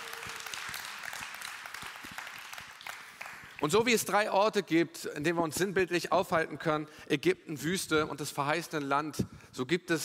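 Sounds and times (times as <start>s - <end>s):
audience applause: 0.0s - 3.8s
speech: 3.6s - 10.0s.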